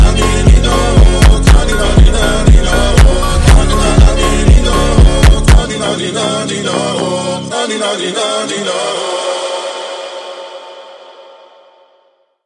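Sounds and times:
slowed funk music: 0:00.0 - 0:07.6.

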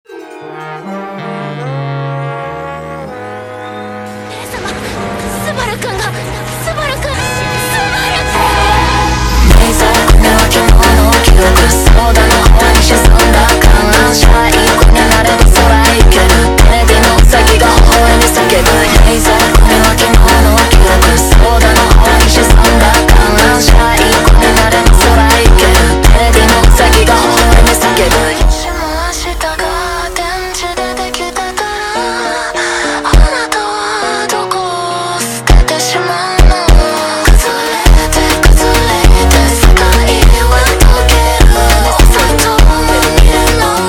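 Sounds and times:
slowed funk music: 0:00.5 - 0:43.8.

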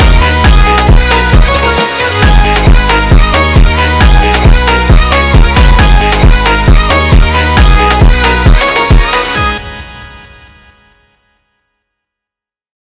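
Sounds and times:
sped up funk music: 0:00.0 - 0:10.0.

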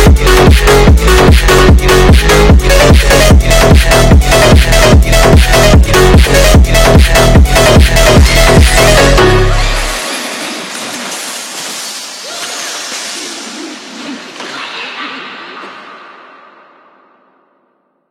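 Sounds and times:
sped-up phonk remix: 0:00.0 - 0:10.4.

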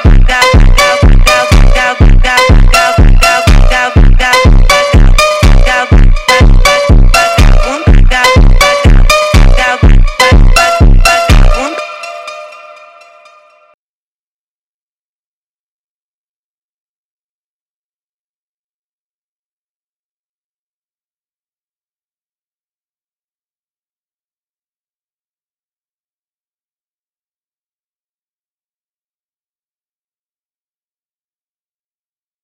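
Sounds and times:
slowed funk music: 0:00.0 - 0:13.5.

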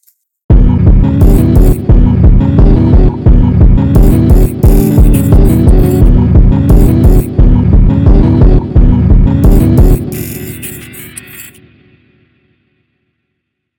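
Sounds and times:
sped-up funk music: 0:00.5 - 0:11.5.

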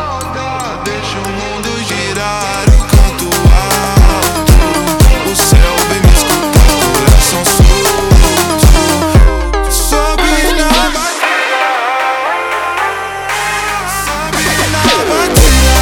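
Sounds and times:
slowed jumpstyle beat: 0:02.2 - 0:12.8, 0:14.4 - 0:15.8.

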